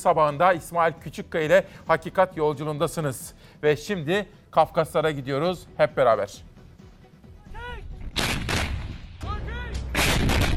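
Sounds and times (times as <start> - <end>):
speech: 0.0 - 6.5
artillery battery firing: 8.1 - 9.2, 9.9 - 10.5.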